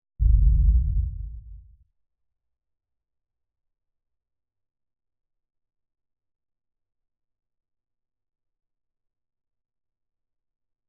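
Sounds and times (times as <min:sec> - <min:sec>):
explosion: 0:00.2 - 0:01.7.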